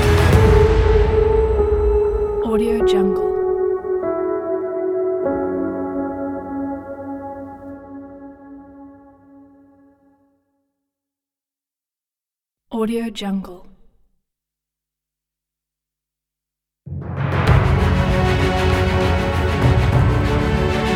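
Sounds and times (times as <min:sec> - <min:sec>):
epic inspirational song: 0:00.0 - 0:09.4, 0:16.9 - 0:20.9.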